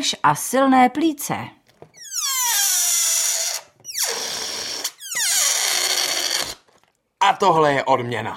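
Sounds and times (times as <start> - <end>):
speech: 0.0 - 1.6, 7.3 - 8.3
air squealing out of an inflated balloon: 1.9 - 6.8.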